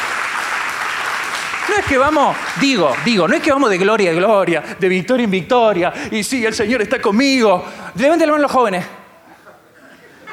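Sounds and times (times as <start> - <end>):
audience applause: 0.0 - 4.0
speech: 1.7 - 9.0.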